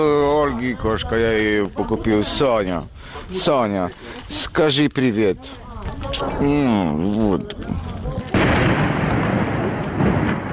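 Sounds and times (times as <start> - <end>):
speech: 0.0 - 8.0
explosion: 8.3 - 10.5.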